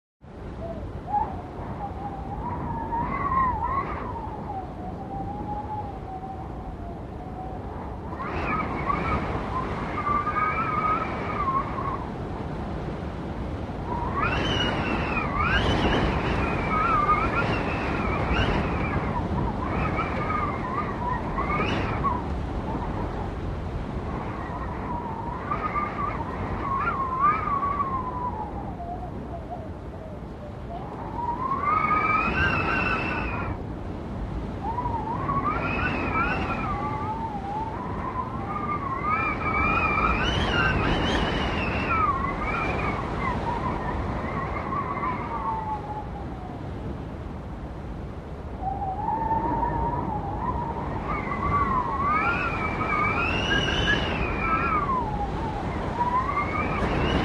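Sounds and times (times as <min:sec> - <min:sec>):
harsh whistling storm wind: 0:00.2 - 0:57.2.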